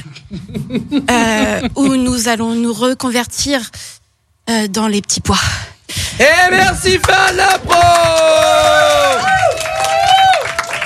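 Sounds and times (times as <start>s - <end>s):
speech: 0.3s - 8.7s
long loud whooping voices: 6.2s - 10.8s
crowd applause: 6.6s - 10.8s.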